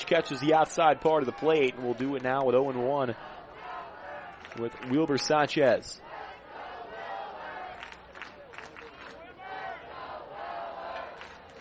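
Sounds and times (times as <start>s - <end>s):
ballpark crowd chanting at HML Ballpark: 0.0s - 11.5s
speech: 0.1s - 3.4s, 4.6s - 6.0s.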